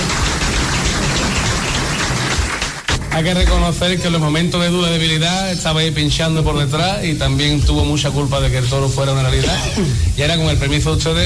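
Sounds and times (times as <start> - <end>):
audience applause: 0.0 - 3.0
speech: 3.2 - 11.2.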